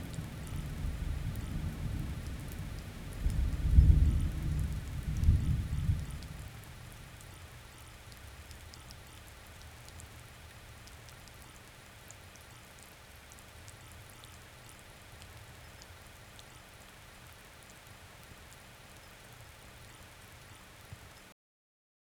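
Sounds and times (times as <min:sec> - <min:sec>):
thunderstorm with rolling thunder: 0:00.0 - 0:07.0.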